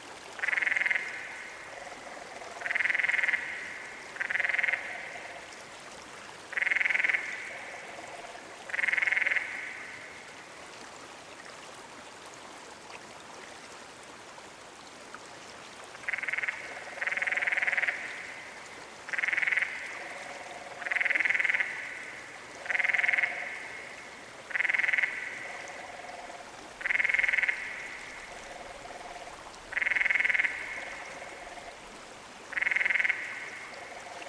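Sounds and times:
canyon frog calling: 0.4 - 5.5, 6.5 - 10.2, 16.0 - 31.8, 32.5 - 34.2.

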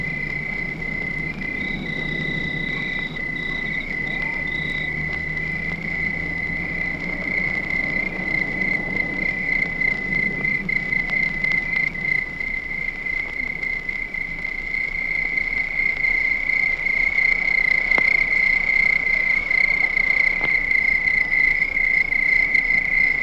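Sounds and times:
distant dog barking: 0.0 - 8.1
crickets chirping at night: 0.0 - 23.2.

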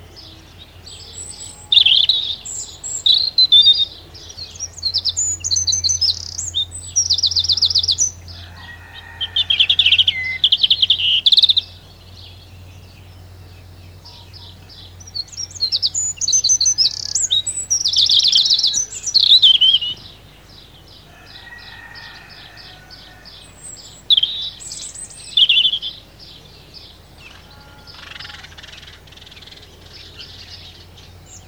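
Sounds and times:
hedgerow birds singing: 0.0 - 31.4.

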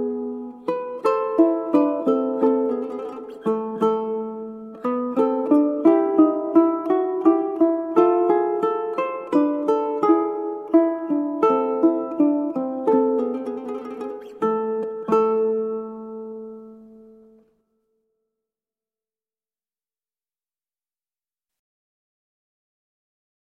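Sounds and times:
classical ukulele playing a sonata adagio: 0.0 - 17.9.

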